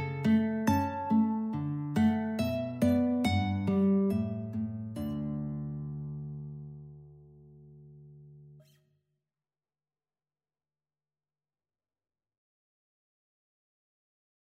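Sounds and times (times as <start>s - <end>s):
guitar trio playing: 0.0s - 7.6s.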